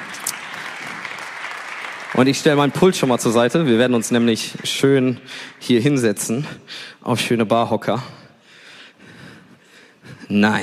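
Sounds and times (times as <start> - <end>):
audience applause: 0.0 - 6.0
speech: 2.2 - 8.2, 10.3 - 10.6.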